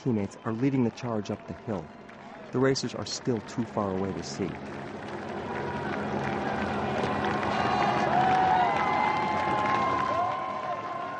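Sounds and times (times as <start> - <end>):
crowd shouts and whistles: 0.0 - 2.7, 5.5 - 11.1
speech: 0.0 - 5.0
roadside crowd clapping and cheering: 0.0 - 11.1.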